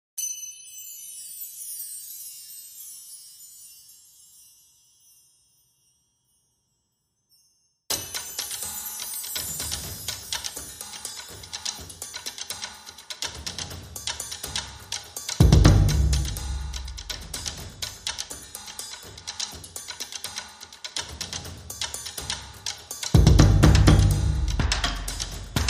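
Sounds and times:
drums: 7.9 - 25.6.

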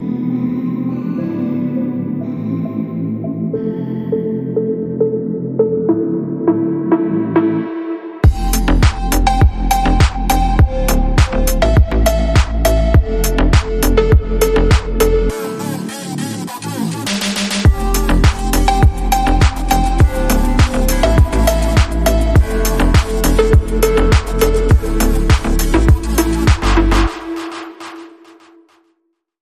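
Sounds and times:
honky-tonk phonk music: 0.0 - 28.7.

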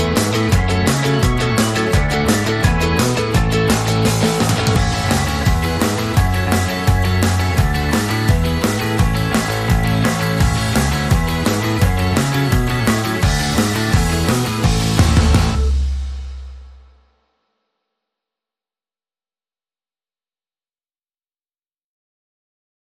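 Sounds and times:
band mix without vocals or lead guitars: 0.0 - 17.2.

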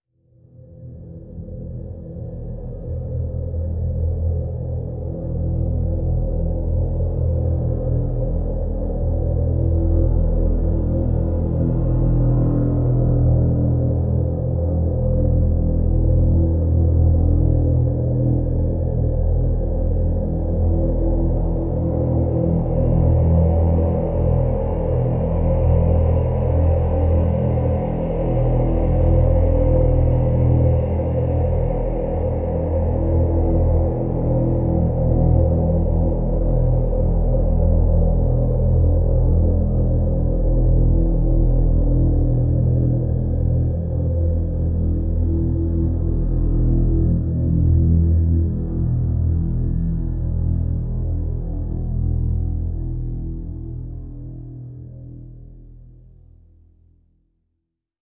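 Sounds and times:
drone in E: 0.9 - 55.0.

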